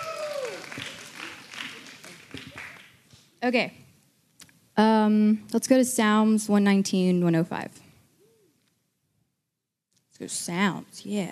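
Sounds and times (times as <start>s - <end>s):
audience applause: 0.0s - 3.0s
speech: 3.4s - 3.8s, 4.8s - 7.8s, 10.2s - 11.2s.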